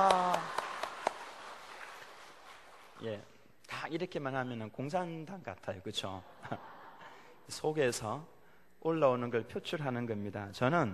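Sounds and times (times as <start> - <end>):
audience cheering: 0.0 - 1.3
evenly spaced claps: 0.0 - 3.0
speech: 3.9 - 6.7, 7.5 - 10.9
laughter: 6.1 - 7.4.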